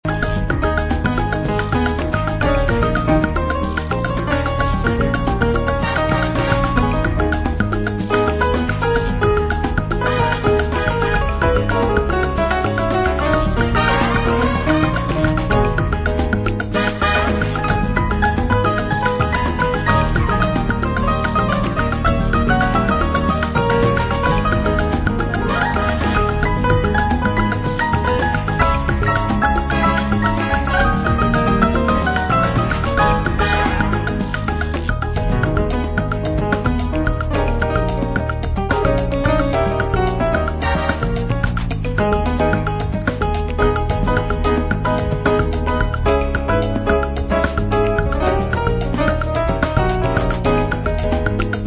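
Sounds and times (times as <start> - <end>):
salsa jazz music: 0.0 - 51.6.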